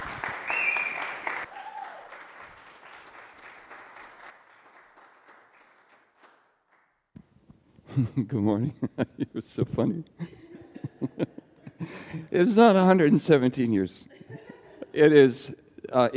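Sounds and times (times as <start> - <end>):
audience applause welcoming a speaker at a morning gathering: 0.0 - 6.9
laughter: 7.9 - 12.3, 14.1 - 15.3
speech: 8.0 - 10.4, 12.1 - 14.1, 15.0 - 16.1.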